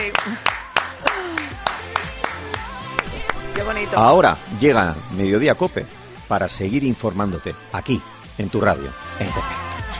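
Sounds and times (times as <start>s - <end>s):
hand claps from two radio show hosts applauding a guest: 0.0s - 3.8s
speech: 0.1s - 0.5s, 3.6s - 9.7s.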